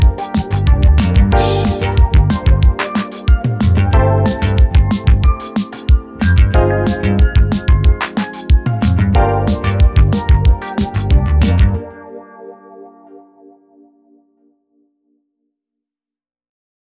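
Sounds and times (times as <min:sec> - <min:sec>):
snap bass: 0:00.4 - 0:02.8, 0:03.6 - 0:05.4, 0:06.2 - 0:08.0, 0:08.7 - 0:11.8.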